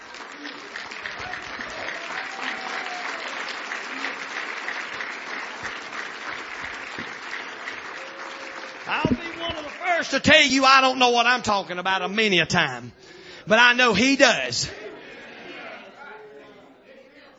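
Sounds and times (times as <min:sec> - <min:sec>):
audience applauding: 0:00.0 - 0:10.9
speech: 0:10.0 - 0:14.8.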